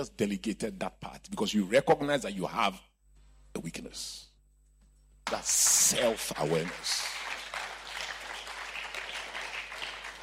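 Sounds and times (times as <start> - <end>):
speech: 0.0 - 2.9, 3.6 - 4.3, 5.3 - 7.1
audience clapping: 5.2 - 10.2.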